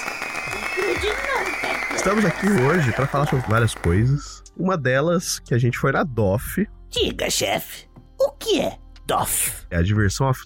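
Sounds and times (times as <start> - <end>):
applause: 0.0 - 4.2
speech: 2.0 - 10.4.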